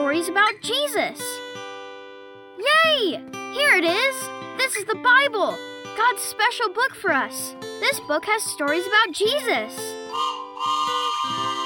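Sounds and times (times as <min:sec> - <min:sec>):
speech: 0:00.1 - 0:01.5, 0:02.6 - 0:10.8
toy train whistle: 0:10.0 - 0:11.6.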